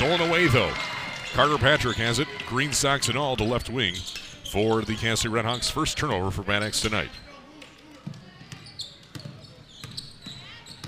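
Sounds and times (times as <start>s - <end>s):
basketball game crowd noise: 0.0s - 10.8s
speech: 0.1s - 7.3s
basketball dribbled on court: 8.0s - 10.8s.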